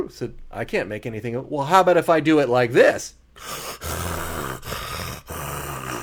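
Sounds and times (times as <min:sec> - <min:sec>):
speech: 0:00.2 - 0:03.8
recorded heavy breathing: 0:03.3 - 0:06.0.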